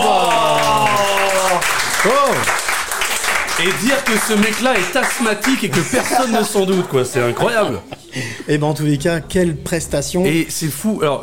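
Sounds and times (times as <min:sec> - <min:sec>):
audience applause: 0:00.0 - 0:07.8
speech: 0:03.6 - 0:11.2
laughter: 0:05.4 - 0:08.6.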